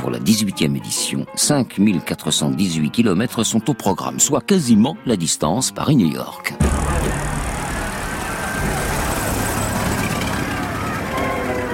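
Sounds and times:
speech: 0.0 - 7.4
small Renault automobile driving across a bridge at night: 6.6 - 11.7.

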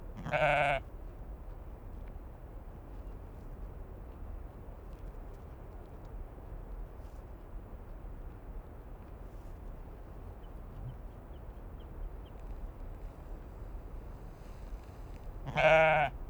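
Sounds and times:
sheep bleating on slopes at Kallur Lighthouse, Kalsoy, Faroe Islands: 0.2 - 0.8, 15.4 - 16.1.

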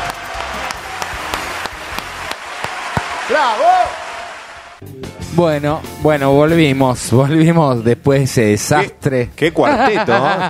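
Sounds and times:
audience applause at an informal evening show: 0.0 - 4.8
speech: 3.3 - 4.0, 5.4 - 10.4
laughter: 9.6 - 10.4.

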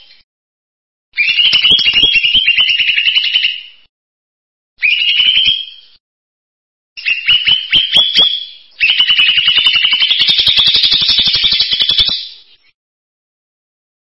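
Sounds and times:
bird song in buzzy trilled phrases: 1.2 - 3.7, 4.8 - 6.0, 7.0 - 12.8.

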